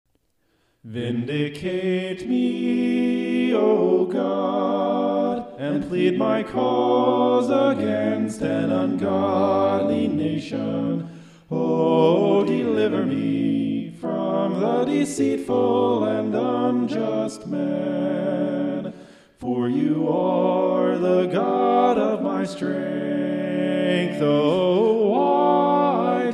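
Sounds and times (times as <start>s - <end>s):
a cappella scripture song: 0.8s - 26.3s.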